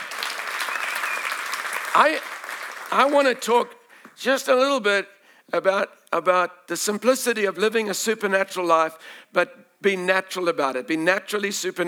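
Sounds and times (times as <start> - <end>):
church congregation clapping and cheering: 0.0 - 4.2
speech: 2.0 - 11.8.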